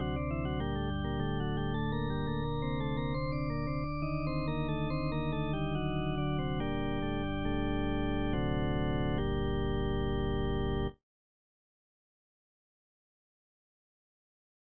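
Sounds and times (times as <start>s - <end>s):
instrumental praeambulum: 0.0s - 11.0s.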